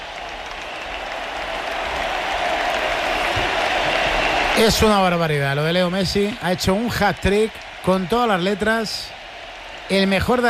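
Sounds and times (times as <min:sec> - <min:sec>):
stadium crowd ovation cheering and clapping: 0:00.0 - 0:10.4
speech: 0:04.6 - 0:09.2, 0:09.9 - 0:10.4.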